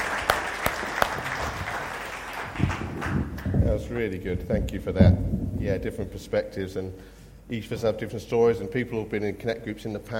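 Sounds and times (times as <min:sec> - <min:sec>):
round of applause: 0:00.0 - 0:03.6
speech: 0:03.8 - 0:10.1.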